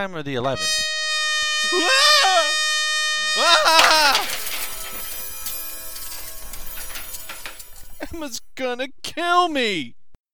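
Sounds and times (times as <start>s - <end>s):
speech: 0.0s - 1.0s, 1.6s - 2.1s, 8.1s - 10.0s
wall clock falling and crashing: 0.5s - 8.4s
clock pieces rattling and clattering: 3.7s - 8.3s.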